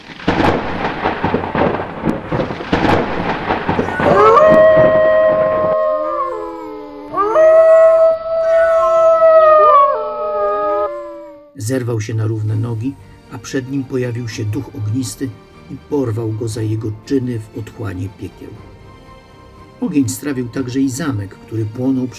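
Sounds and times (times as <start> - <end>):
rumbling stormy roar at night: 0.0 - 11.5
terrifying eerie howls and moans at night: 3.7 - 11.6
speech: 11.7 - 18.7, 19.8 - 22.1.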